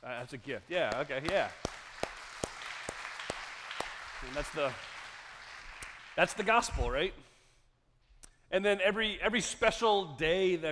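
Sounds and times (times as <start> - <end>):
speech: 0.2 - 1.7, 4.2 - 4.9, 6.2 - 7.3, 8.5 - 10.7
audience applause: 0.5 - 6.6.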